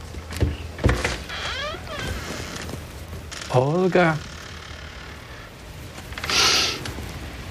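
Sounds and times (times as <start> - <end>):
door creaking open: 0.4 - 7.0
speech: 3.5 - 4.3.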